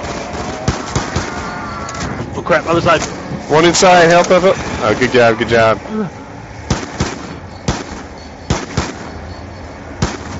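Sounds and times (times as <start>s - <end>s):
video game gunshots: 0.0s - 1.7s, 6.7s - 9.2s, 10.0s - 10.3s
speech: 2.5s - 6.2s.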